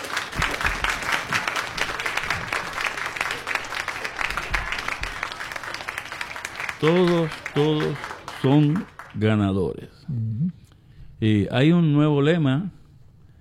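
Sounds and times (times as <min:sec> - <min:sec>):
applause: 0:00.0 - 0:09.4
speech: 0:06.8 - 0:10.3, 0:11.2 - 0:12.8.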